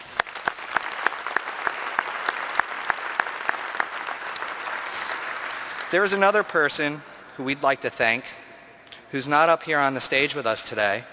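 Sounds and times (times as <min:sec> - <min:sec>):
audience clapping: 0:00.0 - 0:07.4
speech: 0:05.9 - 0:08.4, 0:09.1 - 0:11.1.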